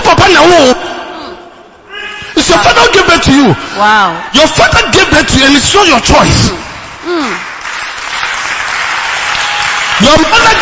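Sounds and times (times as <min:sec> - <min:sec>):
speech: 0:02.6 - 0:07.5, 0:10.0 - 0:10.6
audience clapping: 0:06.9 - 0:10.6.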